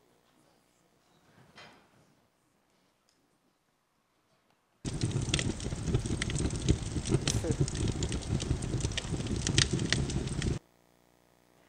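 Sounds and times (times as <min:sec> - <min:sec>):
synthesized fire crackling: 0:04.8 - 0:10.6.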